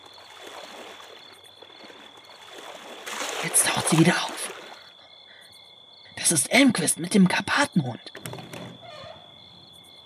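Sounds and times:
person slipping slowly into pool water: 0.0 - 5.0
speech: 3.4 - 4.4, 6.3 - 8.4.

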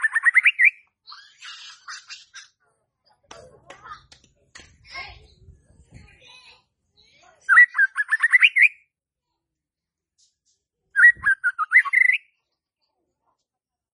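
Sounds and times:
white-rumped shama song: 0.0 - 0.9, 7.5 - 8.9, 11.0 - 12.3.

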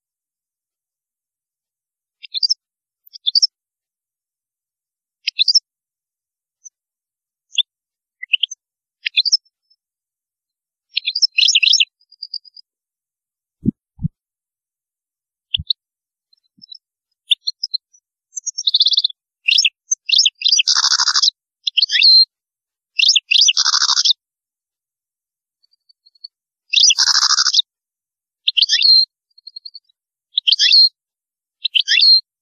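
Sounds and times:
European goldfinch twittering song: 2.2 - 3.5, 5.2 - 5.6, 7.5 - 9.8, 10.9 - 12.6, 16.4 - 22.3, 23.0 - 24.2, 25.7 - 27.6, 28.5 - 31.0, 31.6 - 32.2.

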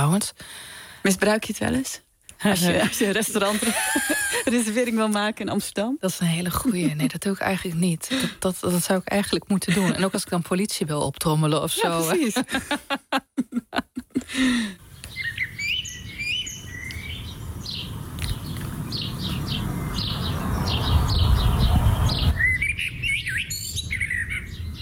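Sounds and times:
speech: 0.0 - 14.8
laughter: 2.6 - 5.0, 6.6 - 7.3, 9.6 - 10.3, 11.7 - 14.8
blackbird singing: 14.9 - 24.8
low rumble: 17.3 - 23.3.

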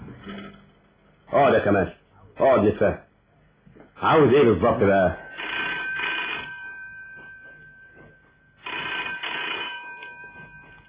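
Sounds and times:
speech: 1.3 - 3.1, 4.0 - 5.2
telephone ringing: 5.2 - 10.8.

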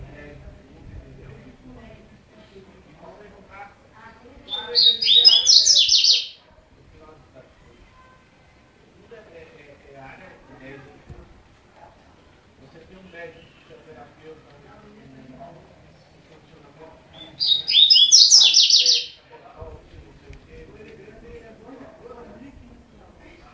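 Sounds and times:
double-collared seedeater singing fast bright chattering notes: 4.5 - 6.4, 17.2 - 19.2.

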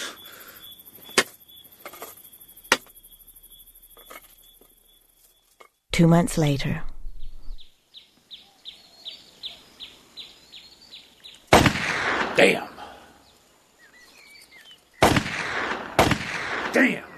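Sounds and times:
speech: 6.0 - 6.9, 12.4 - 12.7
gunshots fired at playing cards: 11.5 - 12.9, 15.0 - 17.1.

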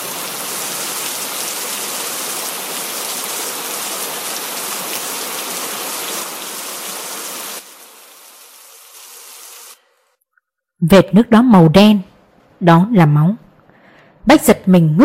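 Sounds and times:
steady rain pattering: 0.0 - 8.2
speech: 10.8 - 13.4, 14.3 - 15.0.

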